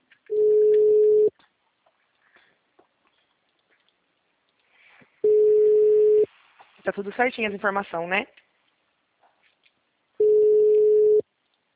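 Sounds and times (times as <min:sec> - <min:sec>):
telephone ringing tone on an outgoing call: 0:00.3 - 0:01.3, 0:05.2 - 0:06.3, 0:10.2 - 0:11.2
speech: 0:06.9 - 0:08.4.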